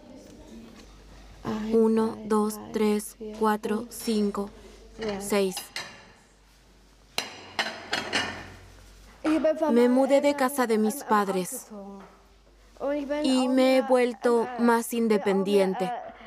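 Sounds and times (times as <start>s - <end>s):
speech: 1.5s - 5.8s, 9.4s - 12.2s, 12.8s - 16.0s
pots and pans clattering as a large frying pan is pulled out: 7.2s - 8.7s.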